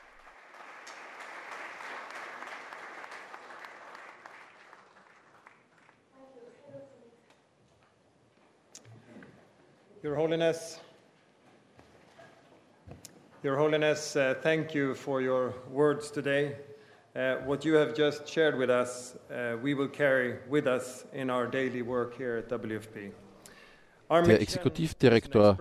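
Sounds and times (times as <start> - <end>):
standing applause for Pope Leo at the World Food Programme in Rome: 0.0 - 6.1
speech: 10.0 - 10.8, 13.4 - 23.2, 24.1 - 25.6.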